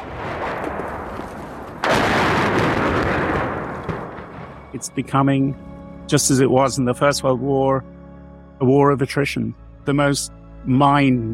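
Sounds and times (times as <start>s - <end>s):
artillery fire rumbling: 0.0s - 5.2s
speech: 4.8s - 8.0s, 8.6s - 11.3s.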